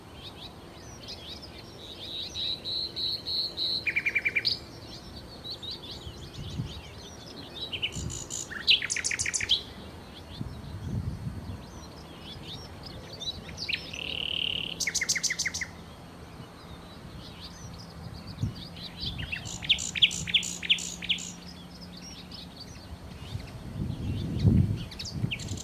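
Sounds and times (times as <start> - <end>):
common nightingale song: 0.0 - 25.6.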